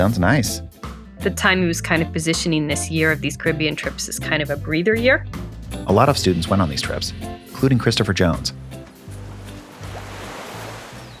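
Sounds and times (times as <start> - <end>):
speech: 0.0 - 8.7
ocean waves crashing on a beach: 7.5 - 11.1.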